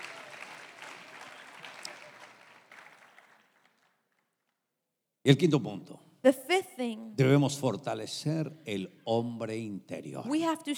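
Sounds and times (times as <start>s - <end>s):
audience applause: 0.0s - 4.3s
speech: 5.2s - 10.7s.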